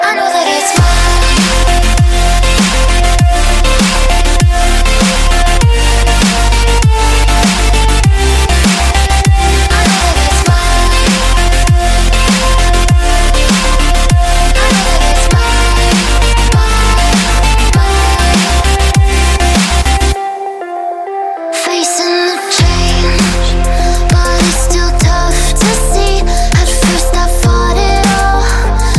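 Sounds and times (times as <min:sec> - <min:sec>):
chillstep music: 0:00.0 - 0:28.9.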